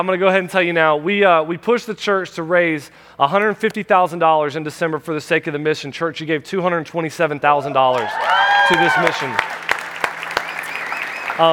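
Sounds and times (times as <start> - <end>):
speech: 0.0 - 9.6
church congregation clapping: 7.9 - 11.5.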